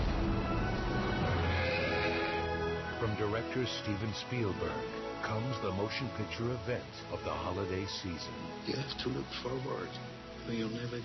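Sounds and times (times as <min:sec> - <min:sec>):
dense loud film trailer soundtrack: 0:00.0 - 0:11.0
horse whinnying in the War Horse film trailer: 0:01.3 - 0:02.6
speech: 0:03.2 - 0:11.0.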